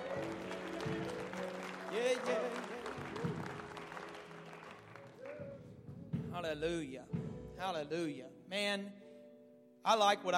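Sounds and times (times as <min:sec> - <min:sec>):
audience clapping: 0:00.0 - 0:05.8
speech: 0:02.0 - 0:02.6, 0:06.4 - 0:09.0, 0:09.8 - 0:10.3.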